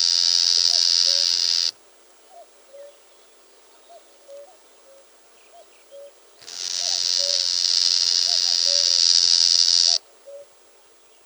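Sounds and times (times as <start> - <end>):
Chinese bush warbler insect-like buzz song: 0.0 - 1.7, 6.4 - 10.0.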